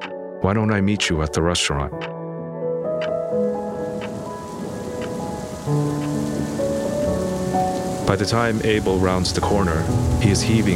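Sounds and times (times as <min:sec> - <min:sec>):
speech: 0:00.4 - 0:02.2, 0:05.7 - 0:06.1, 0:08.1 - 0:10.7
rain pouring down: 0:03.0 - 0:10.7.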